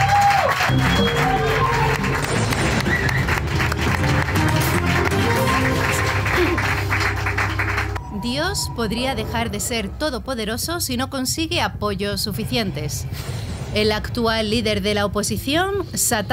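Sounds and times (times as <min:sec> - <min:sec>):
audience applause: 0:00.0 - 0:08.5
speech: 0:08.6 - 0:16.3.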